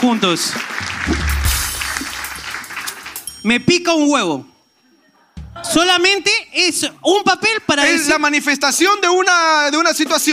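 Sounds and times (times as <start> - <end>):
speech: 0.0 - 1.4, 3.4 - 4.5, 5.7 - 10.3
audience applause: 0.0 - 3.4.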